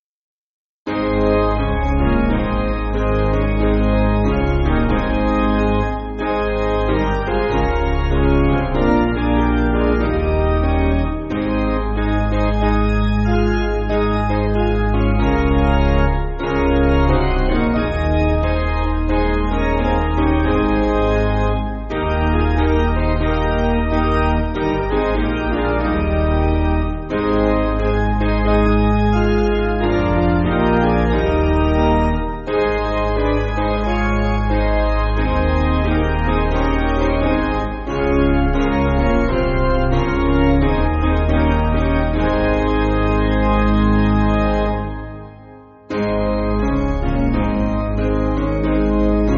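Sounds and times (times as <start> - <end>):
church piano music: 0.9 - 49.3.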